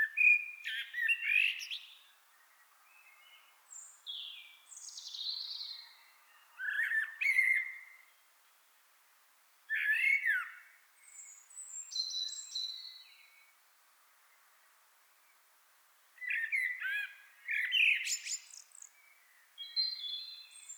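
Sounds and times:
common blackbird Turdus merula singing fluted warbles and squeaky notes: 0.0 - 8.2, 9.7 - 13.4, 16.2 - 20.7.

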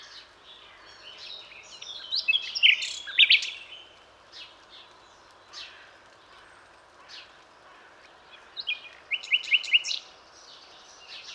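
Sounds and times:
common nightingale song: 0.6 - 4.0, 8.6 - 11.3.

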